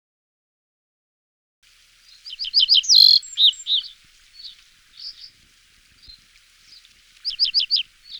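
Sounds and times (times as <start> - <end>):
red-breasted flycatcher song with slurred notes and falling whistles: 1.8 - 8.1.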